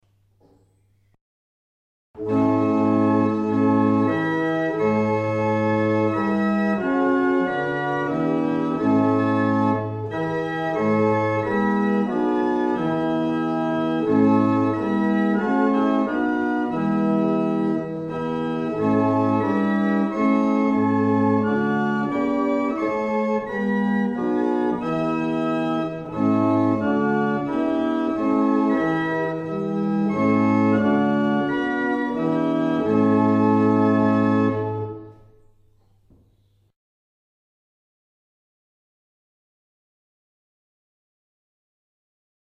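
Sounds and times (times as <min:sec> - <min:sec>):
barrel organ: 0:02.2 - 0:35.5.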